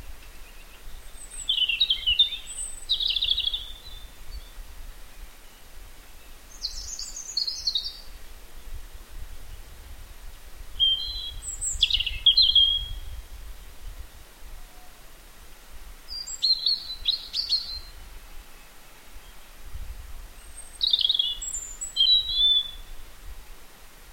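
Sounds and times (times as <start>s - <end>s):
European robin song: 0.0s - 8.2s, 10.8s - 13.2s, 16.1s - 19.6s, 20.3s - 23.2s.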